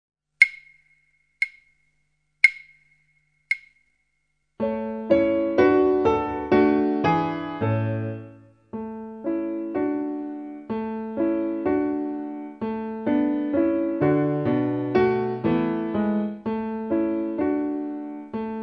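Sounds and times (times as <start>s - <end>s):
piano: 4.6s - 18.6s.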